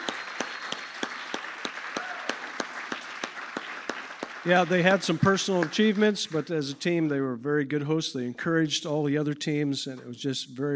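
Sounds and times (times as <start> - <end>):
audience applause for a team being congratulated: 0.0 - 6.5
speech: 4.4 - 10.7.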